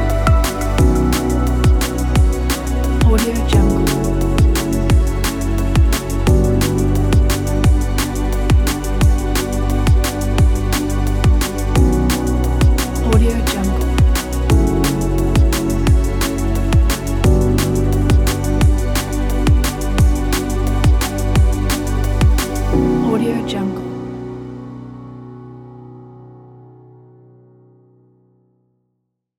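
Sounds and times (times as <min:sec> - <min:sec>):
bass drum: 0:00.0 - 0:22.9.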